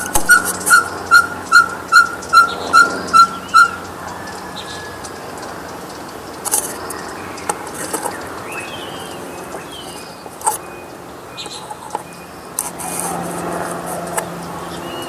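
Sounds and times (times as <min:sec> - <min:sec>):
Ferruginous pygmy owl soft whistled toots: 0:00.0 - 0:03.9.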